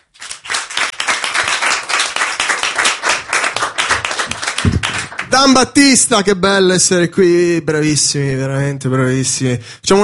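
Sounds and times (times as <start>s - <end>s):
crowd applause: 0.2s - 5.6s
speech: 5.4s - 10.0s.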